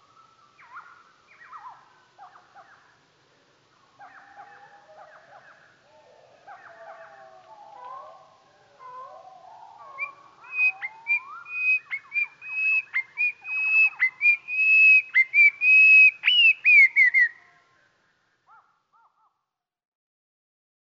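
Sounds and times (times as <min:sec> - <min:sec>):
Goldcrest song slowed down: 0:00.0 - 0:05.6, 0:09.1 - 0:18.2.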